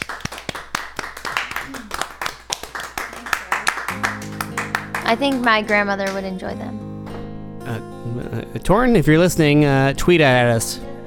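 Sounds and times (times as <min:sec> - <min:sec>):
audience clapping: 0:00.0 - 0:06.6
speech: 0:05.1 - 0:06.8, 0:07.7 - 0:10.9.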